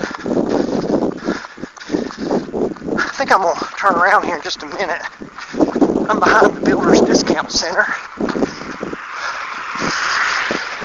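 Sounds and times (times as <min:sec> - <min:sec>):
soft low thumps: 0:00.0 - 0:07.3, 0:08.1 - 0:09.0
road traffic on a street behind a builders' discount store: 0:00.0 - 0:10.8
speech: 0:03.2 - 0:05.2, 0:06.1 - 0:08.0.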